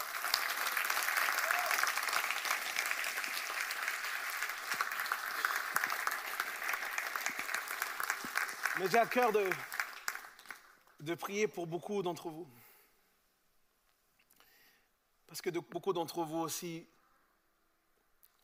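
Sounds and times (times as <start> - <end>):
audience applause: 0.0 - 10.7
speech: 8.8 - 9.7, 11.0 - 12.6, 15.3 - 17.0.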